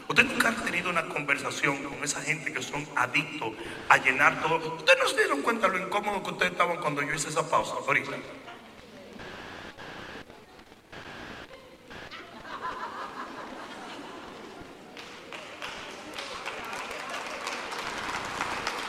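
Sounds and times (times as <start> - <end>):
speech: 0.1 - 8.5
scattered laughter: 12.0 - 14.9
crowd applauding: 12.7 - 18.8.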